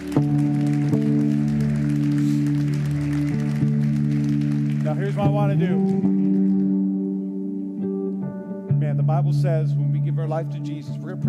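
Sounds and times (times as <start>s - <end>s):
crowd clapping: 0.0s - 7.3s
sustained organ or keyboard chords: 0.0s - 11.2s
speech: 5.2s - 6.2s, 9.2s - 11.2s.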